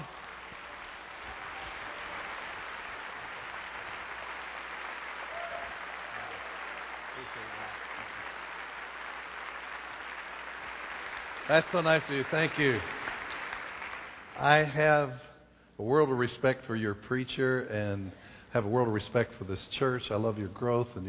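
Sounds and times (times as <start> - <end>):
church congregation applauding to welcome a guest preacher: 0.0 - 14.9
speech: 7.3 - 7.8, 11.5 - 13.0, 14.4 - 21.0.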